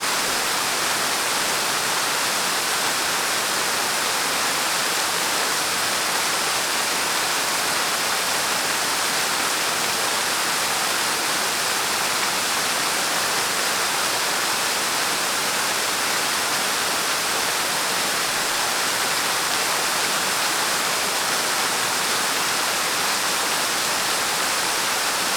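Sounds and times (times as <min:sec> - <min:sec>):
waterfall in Parque Terra Viva: 0:00.0 - 0:25.3.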